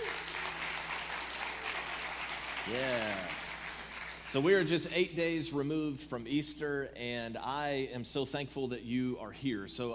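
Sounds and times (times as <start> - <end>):
faint church audience applause for online viewers: 0.0 - 5.0
speech: 2.6 - 3.4, 4.3 - 9.9.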